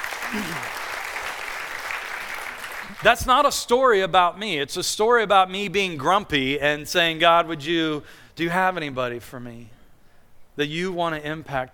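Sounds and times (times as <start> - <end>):
audience applause: 0.0 - 3.0
speech: 0.3 - 0.8, 3.0 - 9.8, 10.6 - 11.7.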